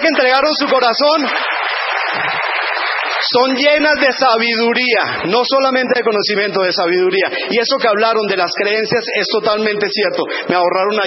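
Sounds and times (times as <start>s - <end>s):
audience applause: 0.0s - 5.8s
speech: 0.1s - 2.5s, 3.2s - 11.0s.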